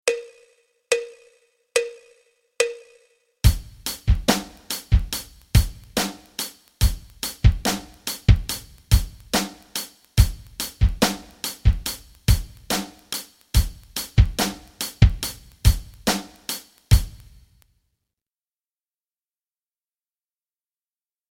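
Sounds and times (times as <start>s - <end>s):
rock rhythms: 3.4s - 17.4s.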